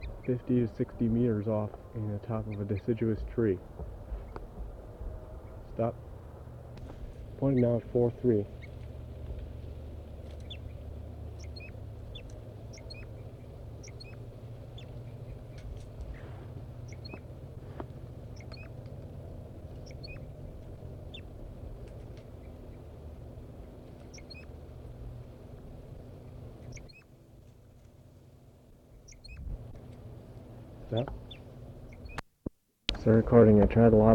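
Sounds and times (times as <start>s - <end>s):
wild birds singing in a treetop: 0.0s - 32.2s
steady low rumble: 0.0s - 34.1s
speech: 0.3s - 4.0s, 5.8s - 6.1s, 7.4s - 8.6s, 33.1s - 34.1s.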